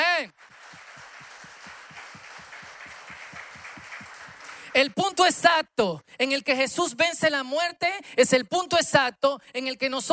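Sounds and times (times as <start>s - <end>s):
audience clapping in rhythm: 0.0s - 5.4s
speech: 4.8s - 10.1s.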